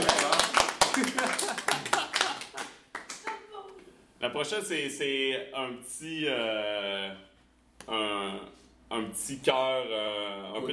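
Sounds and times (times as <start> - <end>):
scattered hand claps from a small group: 0.0 - 3.4
laughter: 1.0 - 2.8
speech: 4.2 - 7.3, 7.9 - 10.7.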